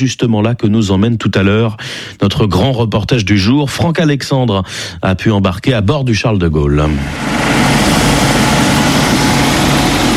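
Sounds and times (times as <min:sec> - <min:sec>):
speech: 0:00.0 - 0:08.3
Caïman military transport helicopter engine landing: 0:06.9 - 0:10.1.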